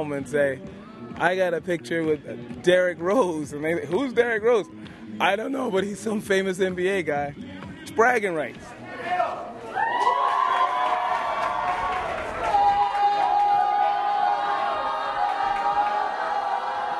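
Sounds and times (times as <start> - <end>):
speech: 0.0 - 9.5
summer camp children and staff cheering and shouting at lunch: 9.1 - 16.9.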